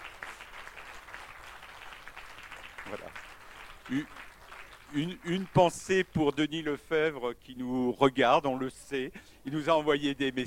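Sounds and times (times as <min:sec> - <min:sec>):
audience applauding: 0:00.0 - 0:06.4
speech: 0:02.9 - 0:03.2, 0:03.9 - 0:04.3, 0:04.9 - 0:10.4.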